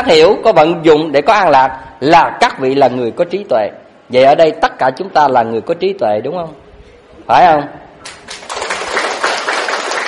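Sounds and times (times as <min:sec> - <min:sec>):
speech: 0:00.0 - 0:06.6, 0:07.3 - 0:08.2
audience clapping at a spiritual teaching session: 0:08.0 - 0:10.0.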